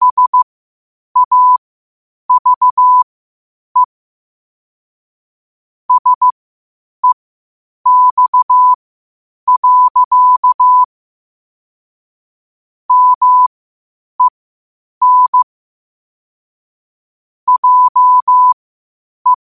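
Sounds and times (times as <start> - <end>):
morse code at 5 wpm: 0.0 - 0.4, 1.2 - 1.6, 2.3 - 3.0, 5.9 - 6.3, 7.9 - 8.8, 9.5 - 10.9, 12.9 - 13.5, 15.0 - 15.5, 17.5 - 18.6.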